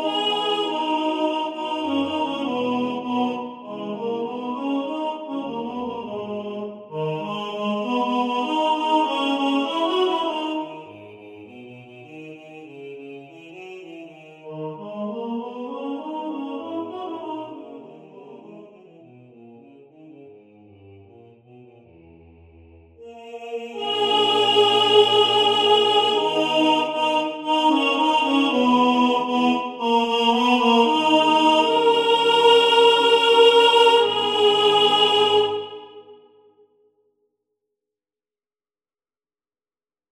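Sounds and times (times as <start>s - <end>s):
second tenor singing in the foreground: 0.0s - 11.2s, 14.5s - 18.6s, 23.0s - 36.2s.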